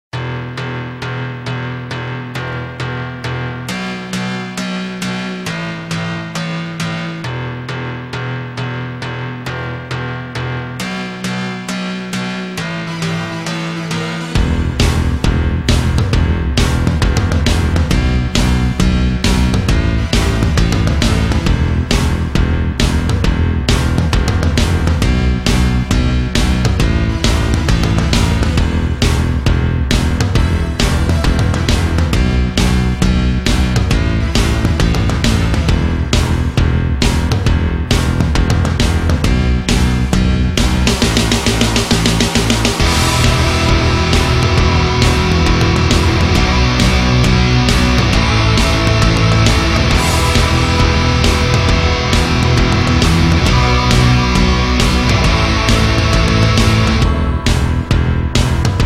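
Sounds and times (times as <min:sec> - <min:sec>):
instrumental music: 0:00.2 - 0:58.8.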